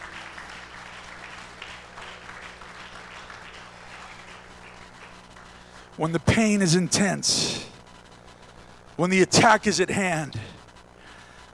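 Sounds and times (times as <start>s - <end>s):
audience hand clapping: 0.0s - 6.3s
speech: 6.0s - 7.7s, 9.0s - 10.4s.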